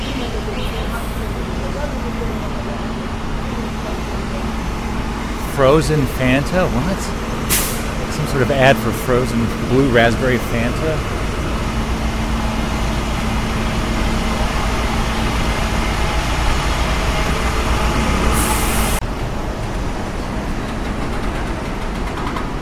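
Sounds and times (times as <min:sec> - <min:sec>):
city street traffic: 0:00.0 - 0:22.5
speech: 0:05.6 - 0:07.3, 0:08.3 - 0:11.2.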